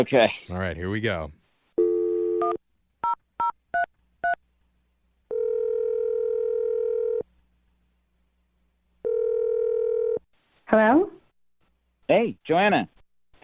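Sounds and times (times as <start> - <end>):
speech: 0.0 - 1.4, 10.7 - 11.2, 12.1 - 13.4
telephone dial tone: 1.8 - 2.6, 5.3 - 7.2, 9.0 - 10.2
phone ringing tones: 1.8 - 4.4, 5.3 - 7.2, 9.0 - 10.2.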